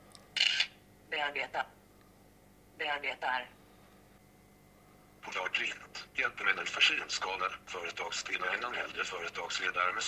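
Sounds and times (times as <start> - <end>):
smartphone camera shutter photographing a sheet of paper: 0.4 - 0.7
speech: 1.2 - 1.8, 2.8 - 3.6, 5.2 - 10.0.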